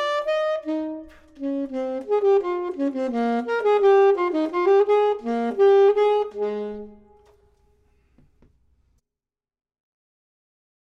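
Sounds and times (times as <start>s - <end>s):
clarinet: 0.0s - 7.9s
saxophone: 0.0s - 7.9s.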